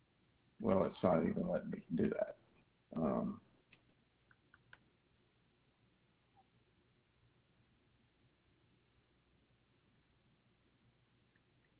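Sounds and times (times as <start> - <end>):
speech: 0.6 - 3.5
computer mouse clicks on a booking website: 3.7 - 4.9.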